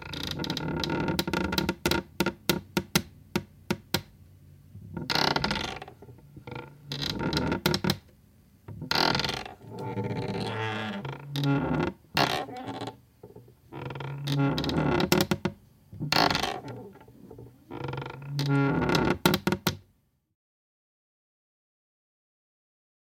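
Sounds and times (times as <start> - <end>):
low wooden hinge creaks on a secretary desk: 0.0 - 4.1, 4.8 - 8.1, 8.7 - 19.8.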